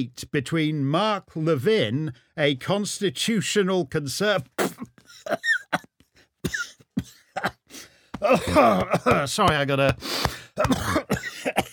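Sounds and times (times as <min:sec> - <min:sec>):
speech: 0:00.0 - 0:05.6, 0:07.4 - 0:11.6
person clearing throat: 0:04.6 - 0:05.9, 0:06.5 - 0:09.3, 0:10.6 - 0:11.7.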